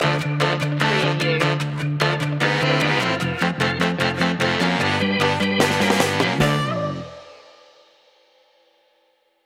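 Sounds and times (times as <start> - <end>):
ska music stinger: 0.0 - 7.5.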